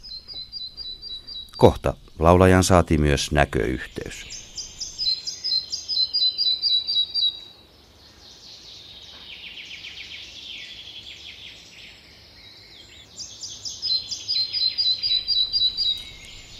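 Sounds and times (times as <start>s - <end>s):
Red-breasted flycatcher singing: 0.0s - 16.5s
speech: 1.6s - 4.4s.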